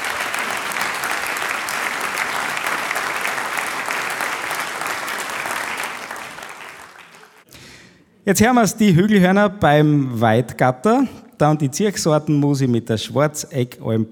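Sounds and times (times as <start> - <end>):
audience applause: 0.0 - 7.5
speech: 8.3 - 14.0.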